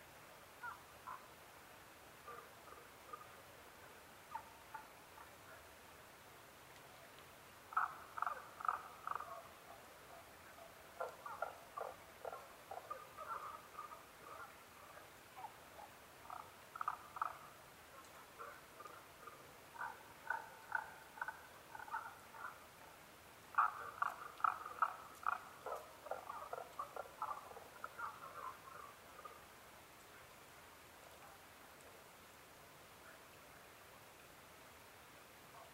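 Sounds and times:
Tago's brown frog calling: 0:00.6 - 0:01.3, 0:02.2 - 0:05.6, 0:07.7 - 0:29.5.

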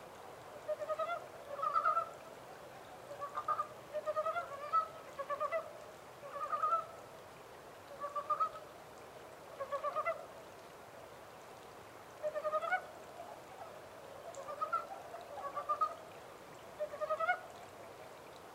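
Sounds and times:
quiet hiss: 0:00.0 - 0:18.5
Japanese mountain brown frog calling: 0:00.6 - 0:02.2, 0:03.0 - 0:07.0, 0:07.9 - 0:08.6, 0:09.6 - 0:10.2, 0:12.2 - 0:16.0, 0:16.8 - 0:17.6.

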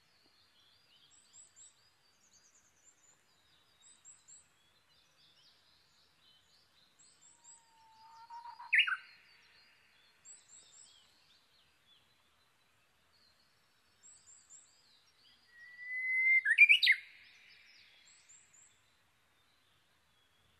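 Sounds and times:
Japanese bush warbler song, long whistle sliding into warbled flourish: 0:07.2 - 0:09.2, 0:15.6 - 0:17.2.

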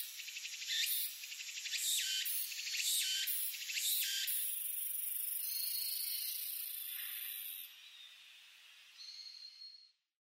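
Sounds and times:
Walker's cicada song: 0:00.0 - 0:07.8.

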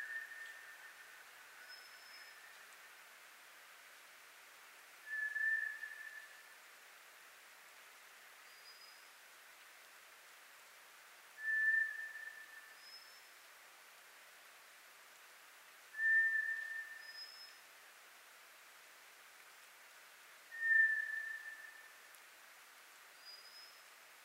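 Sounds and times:
White's thrush song: 0:00.0 - 0:02.6, 0:05.0 - 0:06.5, 0:08.5 - 0:09.0, 0:11.4 - 0:13.2, 0:15.9 - 0:17.6, 0:20.5 - 0:22.0, 0:23.2 - 0:23.8
quiet hiss: 0:00.0 - 0:24.2.

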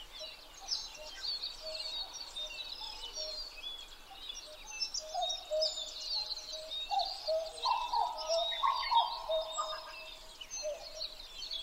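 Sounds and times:
dawn chorus of songbirds chirping and twittering: 0:00.0 - 0:11.6
common cuckoo calling cu-coo: 0:06.6 - 0:10.0.

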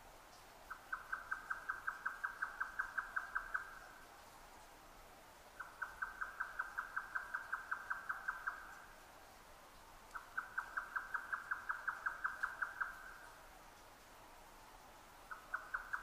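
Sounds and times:
grey nightjar song: 0:00.7 - 0:03.8, 0:05.6 - 0:08.9, 0:10.1 - 0:13.2, 0:15.3 - 0:16.0.

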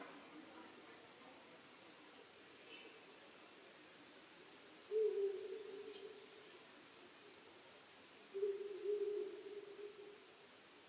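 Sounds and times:
owl hooting: 0:04.9 - 0:06.2, 0:08.3 - 0:10.2.

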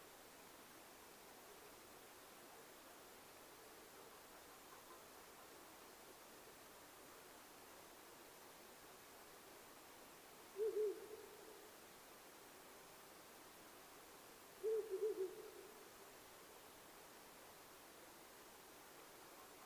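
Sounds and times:
owl giving low soft hoots: 0:10.6 - 0:11.7, 0:14.6 - 0:15.9.

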